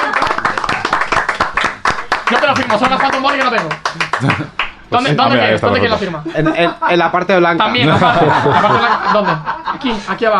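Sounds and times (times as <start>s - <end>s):
applause from several people: 0.0s - 4.8s
speech: 2.3s - 10.3s
laughter: 3.9s - 10.3s.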